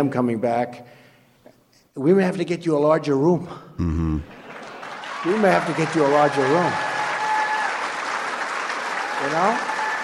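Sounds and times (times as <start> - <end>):
speech: 0.0 - 1.0, 2.0 - 4.4, 5.2 - 6.9, 9.2 - 9.7
audience clapping at a speech given at the CIA: 4.3 - 10.0.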